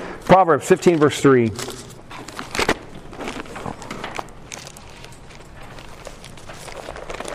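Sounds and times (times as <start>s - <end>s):
speech: 0.3s - 1.8s
thin Bible pages being turned in a hurry: 1.6s - 7.3s.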